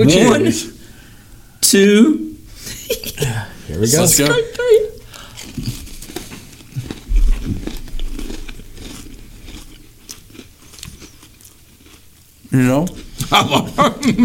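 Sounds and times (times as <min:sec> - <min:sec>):
speech: 0:00.0 - 0:00.8, 0:01.6 - 0:04.8, 0:12.5 - 0:14.2
laughter: 0:02.6 - 0:03.6, 0:04.2 - 0:05.0, 0:13.2 - 0:14.2
biting and chewing Oreo cookies: 0:03.9 - 0:13.8.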